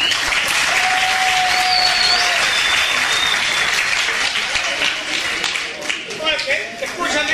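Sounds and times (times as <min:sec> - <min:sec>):
whistles: 0:00.0 - 0:00.4, 0:01.4 - 0:03.8
crowd applauding: 0:00.0 - 0:07.2.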